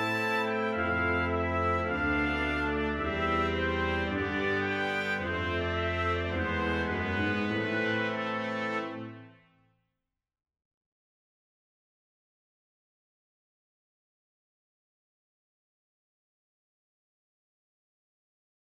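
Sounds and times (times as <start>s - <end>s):
brass quintet: 0.0s - 9.6s.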